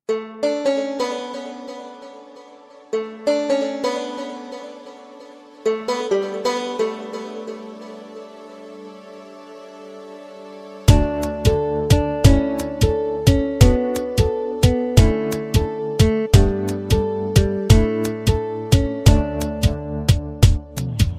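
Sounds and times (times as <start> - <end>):
sweet music: 0.0 - 21.1.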